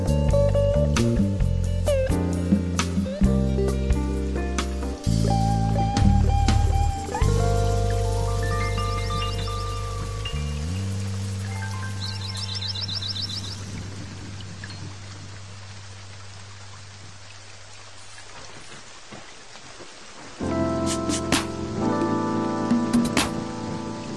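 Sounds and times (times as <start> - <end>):
smooth jazz with bass and keyboard chords: 0.0 - 14.1, 20.4 - 24.1
rain patter: 0.0 - 24.1.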